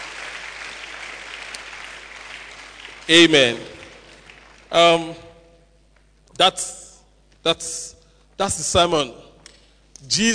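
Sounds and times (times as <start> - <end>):
crowd clapping: 0.0 - 5.2
speech: 3.1 - 3.7, 4.7 - 5.3, 6.4 - 6.8, 7.4 - 9.3, 10.0 - 10.3.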